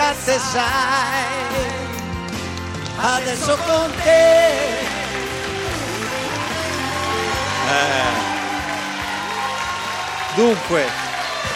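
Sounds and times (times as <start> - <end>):
speech: 0.4 - 1.7, 3.0 - 5.0, 7.7 - 8.3, 10.4 - 11.0
audience applause: 2.8 - 11.5.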